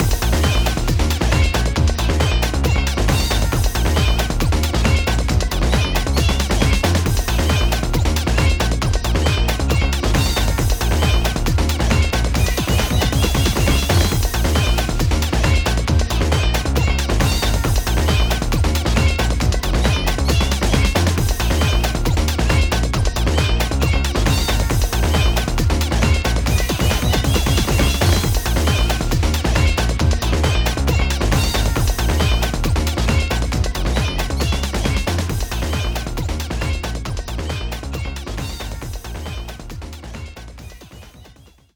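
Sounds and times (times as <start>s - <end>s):
background music: 0.0s - 41.4s.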